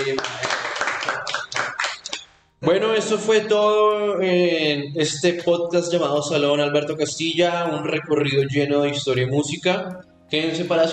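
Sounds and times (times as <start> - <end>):
applause: 0.0 - 2.2
speech: 0.1 - 0.4, 2.6 - 10.9.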